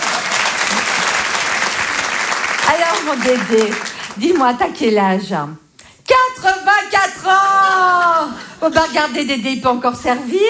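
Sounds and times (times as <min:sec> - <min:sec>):
audience applause for an elderly man on stage: 0:00.0 - 0:04.2
speech: 0:02.7 - 0:10.4.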